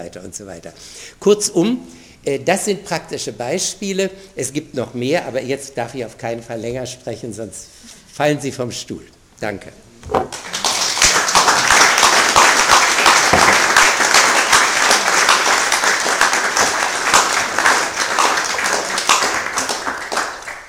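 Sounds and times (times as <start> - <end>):
speech: 0.0 - 10.5
audience applause: 10.3 - 20.6.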